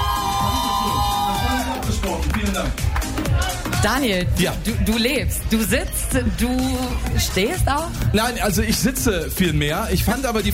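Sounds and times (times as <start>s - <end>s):
whoops from a festival crowd: 0.0s - 1.8s
festival crowd at Parookaville 2022 cheering and applauding: 0.0s - 4.0s
speech: 3.8s - 10.5s.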